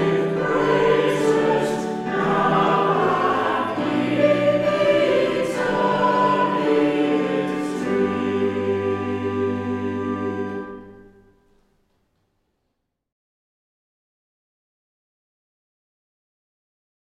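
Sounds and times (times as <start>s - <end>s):
choir singing hymns: 0.0s - 11.3s.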